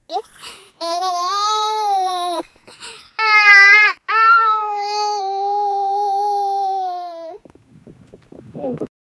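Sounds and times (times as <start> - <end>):
happy child: 0.1 - 2.5, 3.2 - 7.5.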